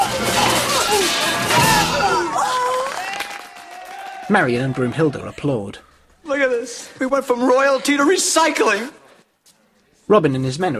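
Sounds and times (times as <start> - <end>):
suits of armor crashing and clattering like dominoes: 0.0 - 2.4
speech: 4.3 - 9.0, 10.1 - 10.7.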